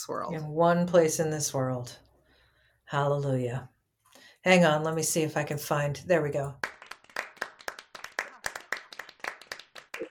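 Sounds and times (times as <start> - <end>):
speech: 0.0 - 2.1, 2.9 - 3.7, 4.4 - 6.7
applause sound effect: 6.6 - 10.1.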